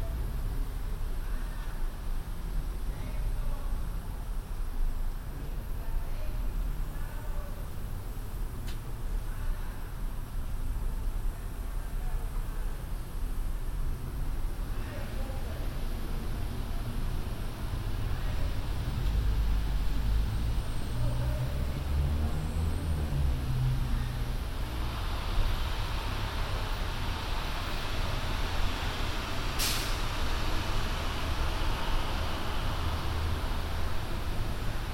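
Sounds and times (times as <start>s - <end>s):
MTA transit vehicle rumble and engine drone: 0.0s - 34.9s
hiss: 26.8s - 32.7s.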